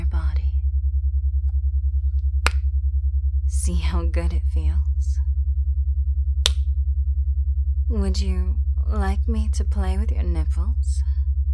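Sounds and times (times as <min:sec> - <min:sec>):
low pulsing drone: 0:00.0 - 0:11.5
finger snap: 0:02.4 - 0:02.7, 0:06.4 - 0:06.7
speech: 0:03.7 - 0:04.9, 0:07.9 - 0:10.9.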